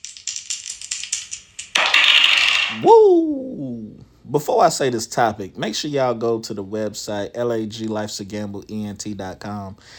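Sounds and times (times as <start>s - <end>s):
dice being rolled: 0.0s - 2.8s
speech: 2.7s - 3.6s, 4.3s - 9.9s.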